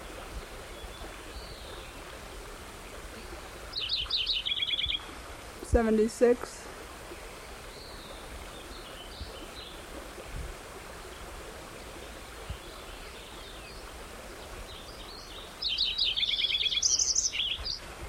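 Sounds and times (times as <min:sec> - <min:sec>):
stream water rushing: 0:00.0 - 0:18.0
White-crowned sparrow singing: 0:03.7 - 0:05.1, 0:15.2 - 0:17.8
speech: 0:05.8 - 0:06.6.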